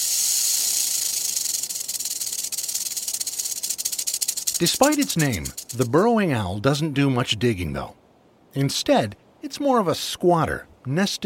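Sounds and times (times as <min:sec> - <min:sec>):
real rattlesnake rattling: 0:00.0 - 0:06.0
speech: 0:04.6 - 0:11.2.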